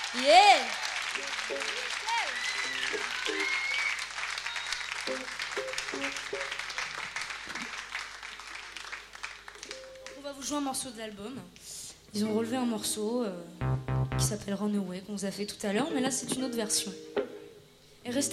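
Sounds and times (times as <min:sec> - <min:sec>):
audience applause for guitarist: 0:00.0 - 0:09.8
speech: 0:00.1 - 0:03.4, 0:10.5 - 0:17.2, 0:18.1 - 0:18.3.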